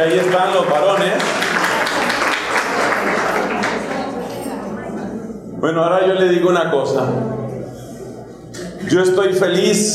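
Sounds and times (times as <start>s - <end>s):
speech: 0.0s - 1.4s, 5.6s - 7.4s, 8.9s - 9.9s
audience applauding: 0.0s - 4.2s.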